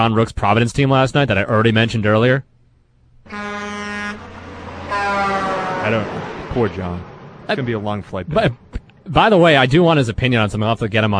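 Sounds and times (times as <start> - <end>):
speech: 0.0 - 2.5, 3.2 - 3.5, 5.9 - 11.1
truck horn sound effect: 3.3 - 6.2.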